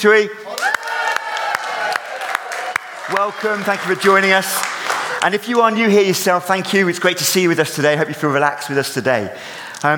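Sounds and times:
speech: 0:00.0 - 0:00.5, 0:03.1 - 0:09.9
audience cheering: 0:00.5 - 0:05.3.

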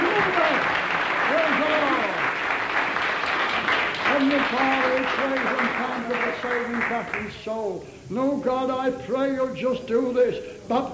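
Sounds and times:
audience clapping: 0:00.0 - 0:07.6
speech: 0:06.4 - 0:10.9.

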